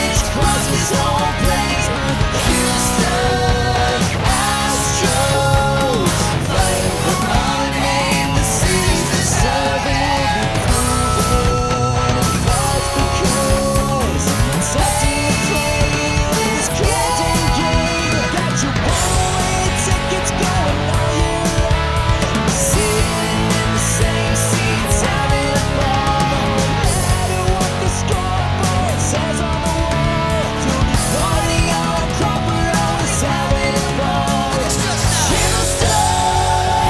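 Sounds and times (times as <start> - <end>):
electric sound: 0.0 - 36.8.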